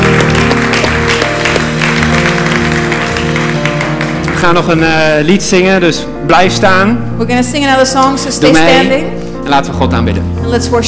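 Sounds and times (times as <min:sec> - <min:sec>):
audience applause: 0:00.0 - 0:05.1
speech: 0:04.4 - 0:10.8.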